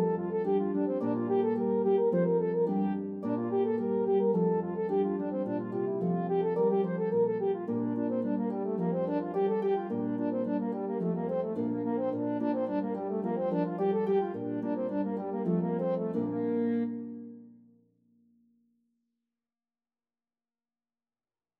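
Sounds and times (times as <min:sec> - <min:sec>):
horn in F and harp duet reel: 0:00.0 - 0:17.1.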